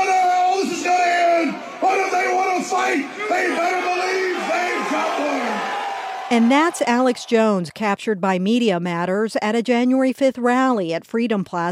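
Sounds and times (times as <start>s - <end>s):
crowd cheering: 0.0s - 7.8s
speech: 2.8s - 4.2s, 6.3s - 11.7s.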